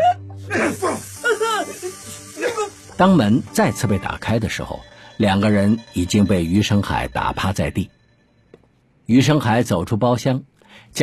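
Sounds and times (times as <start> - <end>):
men wailing and groaning in pain inside a room: 0.0 - 1.8, 2.4 - 2.8
speech: 3.0 - 8.0, 9.1 - 11.0
low steady tone: 3.9 - 9.1.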